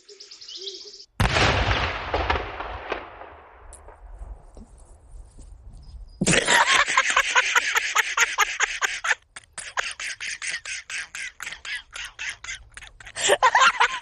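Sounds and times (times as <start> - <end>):
faint birdsong: 0.0 - 1.2, 5.6 - 6.3
loud explosion with rumbling roar: 1.2 - 4.0
laughter: 6.3 - 14.0.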